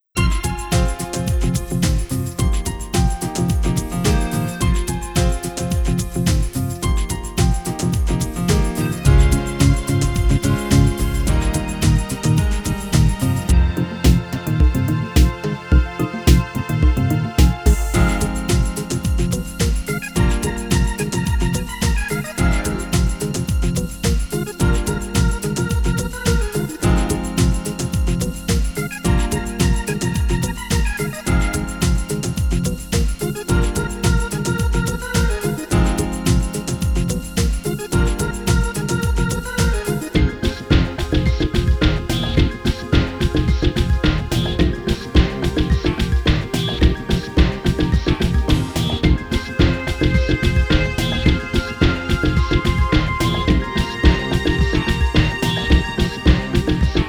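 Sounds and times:
lute playing: 0.2 - 57.0.

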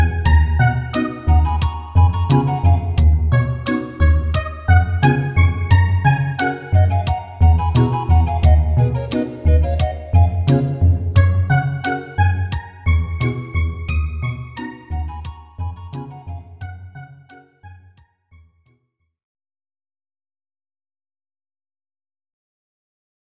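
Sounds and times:
metronome clicking: 0.0 - 15.4.

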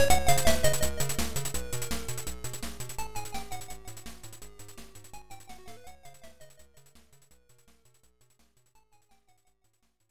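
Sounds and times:
background music: 0.0 - 6.5.

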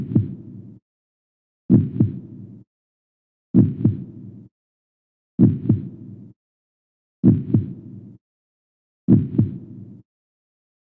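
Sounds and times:
heartbeat: 0.0 - 0.4, 1.7 - 2.2, 3.6 - 4.1, 5.4 - 5.9, 7.2 - 7.8, 9.1 - 9.8.

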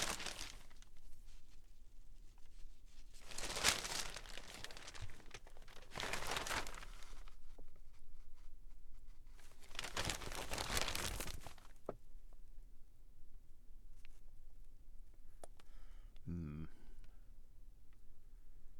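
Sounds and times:
paper rustling: 0.0 - 1.7, 2.3 - 12.0
person's voice: 16.3 - 16.9.

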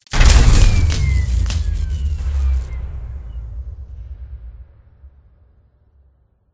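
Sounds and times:
power short circuit: 0.0 - 2.8.

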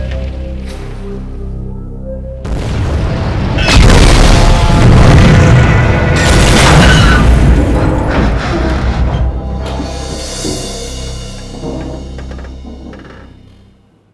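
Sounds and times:
building explosion indoors: 2.4 - 9.1.

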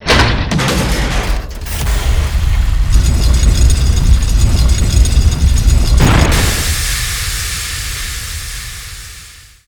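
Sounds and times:
basement door: 0.1 - 7.4.

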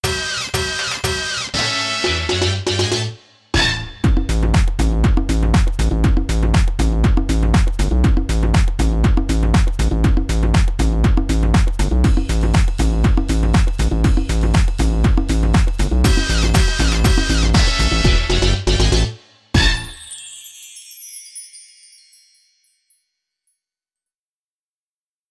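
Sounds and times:
zombie-themed dance party music: 0.0 - 20.1.

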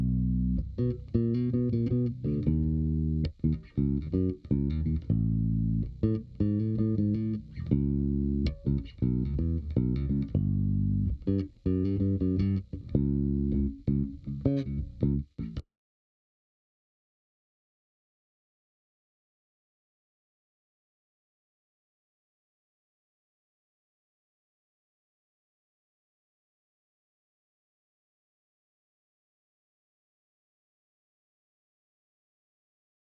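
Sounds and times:
bass: 0.0 - 15.7.

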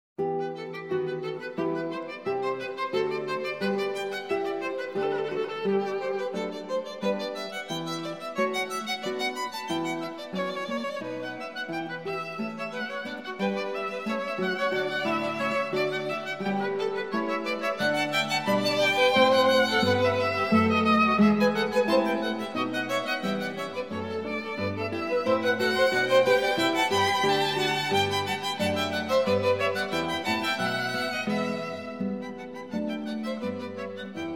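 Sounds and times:
trio sonata in E minor prestissimo: 0.2 - 34.3.

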